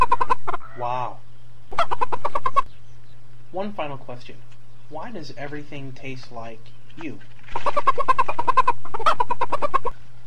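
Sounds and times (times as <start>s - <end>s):
chicken clucking: 0.0s - 0.9s, 1.7s - 3.2s, 6.9s - 10.0s
low constant hum: 0.0s - 10.2s
speech: 3.6s - 9.7s.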